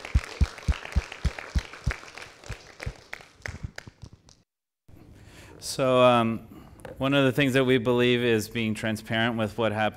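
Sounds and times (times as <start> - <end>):
audience applause: 0.0 - 4.0
speech: 5.6 - 9.9.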